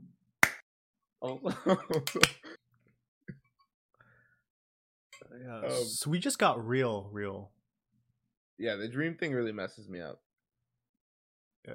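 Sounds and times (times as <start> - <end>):
hand clap: 0.4 - 0.6, 1.9 - 2.5
speech: 1.2 - 2.5, 5.4 - 7.6, 8.6 - 10.2
laughter: 1.4 - 2.6.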